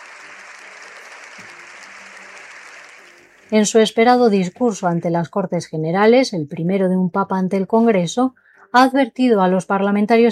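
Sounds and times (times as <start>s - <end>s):
long ovation in parliament: 0.0s - 3.6s
speech: 3.5s - 10.3s.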